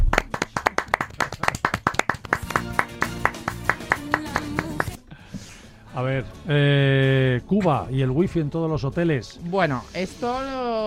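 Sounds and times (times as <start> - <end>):
applause: 0.0 - 5.0
speech: 6.0 - 10.8.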